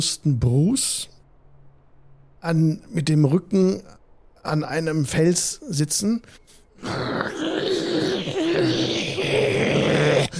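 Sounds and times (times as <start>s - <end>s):
speech: 0.0s - 1.1s, 2.4s - 7.8s
person imitating an animal's growl: 6.8s - 10.3s.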